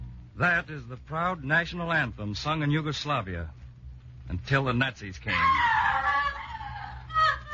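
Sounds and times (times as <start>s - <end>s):
speech: 0.4s - 3.6s, 4.3s - 5.8s
Yugoslav woman screaming: 5.3s - 7.5s.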